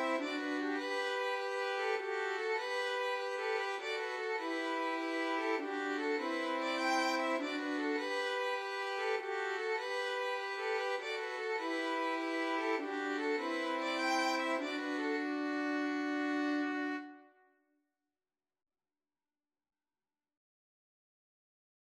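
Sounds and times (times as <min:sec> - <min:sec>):
violin trio: 0:00.0 - 0:17.3.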